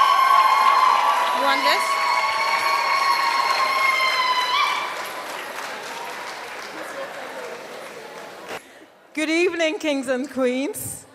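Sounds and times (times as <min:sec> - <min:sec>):
audience applause in a packed ballroom at an evening celebration: 0:00.0 - 0:08.6
speech: 0:01.5 - 0:01.9, 0:09.2 - 0:11.0.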